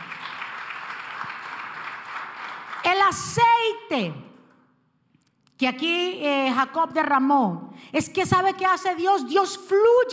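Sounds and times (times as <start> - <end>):
audience applause: 0.0 - 2.8
speech: 2.8 - 4.3, 5.6 - 10.1.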